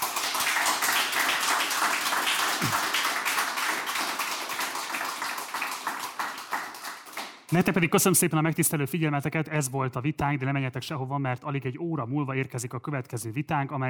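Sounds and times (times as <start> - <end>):
audience applause: 0.0 - 7.3
speech: 2.6 - 2.8, 7.5 - 13.8.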